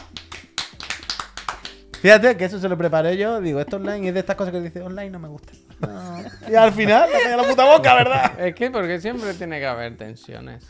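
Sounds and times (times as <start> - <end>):
hand claps: 0.0 - 2.2
speech: 2.0 - 10.6
laughter: 3.4 - 4.3, 5.8 - 8.5.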